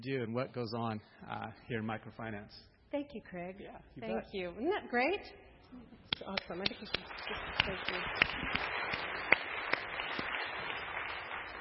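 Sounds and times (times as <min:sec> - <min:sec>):
speech: 0:00.0 - 0:09.5
audience applauding: 0:06.1 - 0:11.6.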